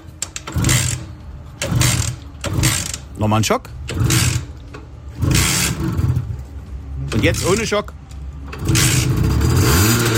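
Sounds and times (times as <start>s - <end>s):
Simson two-stroke moped engine starting and revving: 0.4s - 3.1s, 3.9s - 6.4s, 8.4s - 10.1s
speech: 3.2s - 4.3s, 7.2s - 8.0s.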